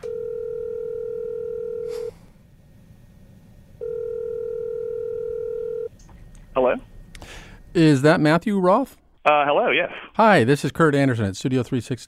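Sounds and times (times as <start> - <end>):
telephone ringback tone: 0.0 - 2.1, 3.8 - 5.9
speech: 6.6 - 6.9, 7.7 - 12.0.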